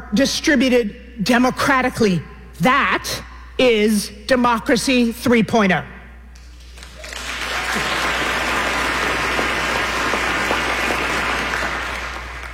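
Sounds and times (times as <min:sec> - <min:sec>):
speech: 0:00.1 - 0:05.9
audience clapping: 0:06.4 - 0:12.5.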